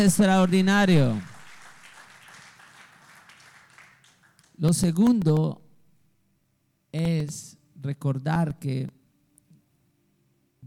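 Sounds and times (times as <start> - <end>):
speech: 0.0 - 1.3, 4.6 - 5.6, 6.9 - 9.0
audience applauding: 0.5 - 4.6.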